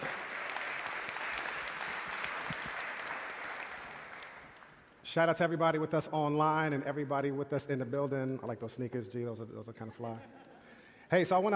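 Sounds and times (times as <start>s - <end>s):
audience applause: 0.0s - 4.8s
speech: 5.2s - 10.5s, 11.1s - 11.5s.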